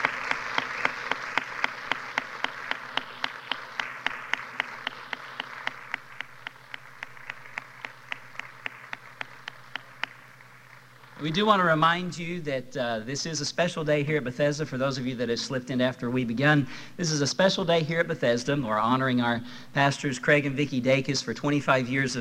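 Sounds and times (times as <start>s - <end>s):
audience applause: 0.0s - 11.5s
speech: 11.2s - 22.1s.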